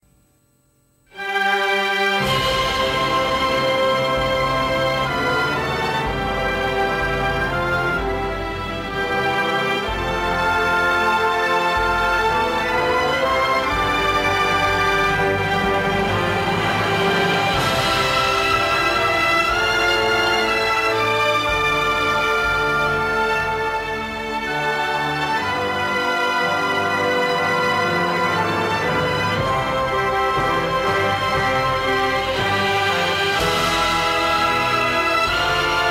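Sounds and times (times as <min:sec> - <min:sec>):
anthem music: 0:01.1 - 0:35.8.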